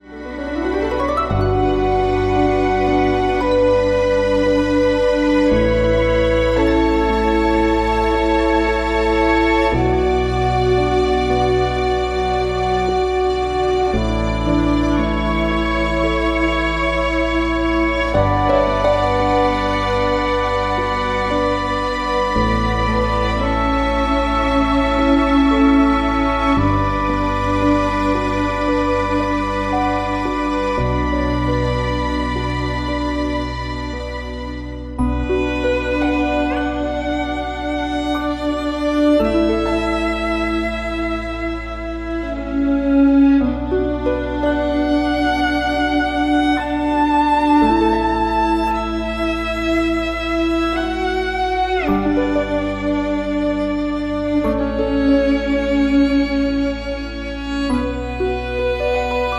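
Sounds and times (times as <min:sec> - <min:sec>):
orchestral legend music: 0:00.0 - 0:59.3.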